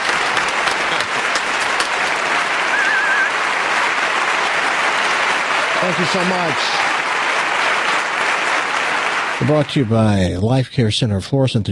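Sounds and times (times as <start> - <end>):
audience applause: 0.0 - 10.4
speech: 5.8 - 6.8, 9.4 - 11.7.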